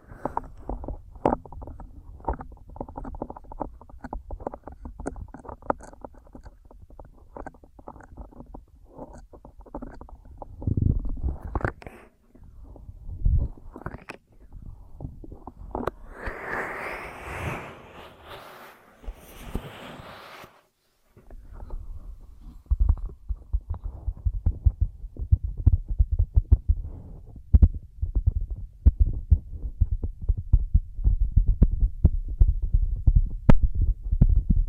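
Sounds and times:
muffled thumps and rubbing of ear massage and cleaning: 0.0 - 34.6
hissing scrape: 15.6 - 20.7.

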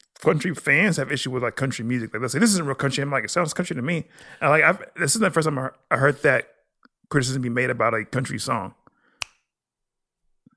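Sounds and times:
speech: 0.2 - 6.5, 7.1 - 8.8
finger snap used in country music: 9.2 - 9.5.

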